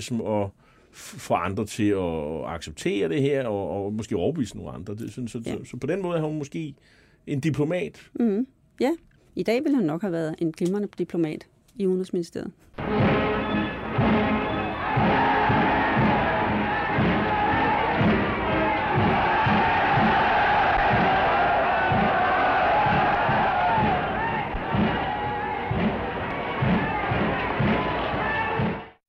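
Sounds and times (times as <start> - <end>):
speech: 0.0 - 13.1
huge crowd roaring and cheering at a Nazi mass rally: 12.8 - 29.0
rhythmic shouts and stamps of a rally crowd: 12.8 - 29.0.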